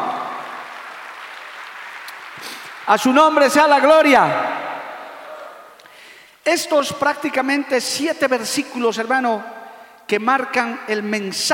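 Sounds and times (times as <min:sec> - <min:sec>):
audience applauding: 0:00.0 - 0:05.7
speech: 0:02.4 - 0:04.6, 0:06.5 - 0:11.5.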